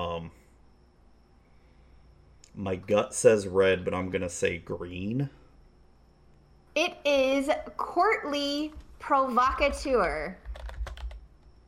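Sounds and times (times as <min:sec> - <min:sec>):
speech: 0:02.6 - 0:05.4, 0:06.8 - 0:10.4
typing a Magic card name into Scryfall on a computer keyboard: 0:10.4 - 0:11.3.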